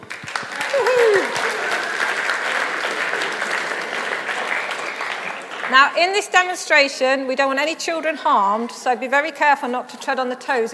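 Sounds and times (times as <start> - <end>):
crowd clapping for volunteers: 0.0 - 6.7
speech: 5.7 - 10.7.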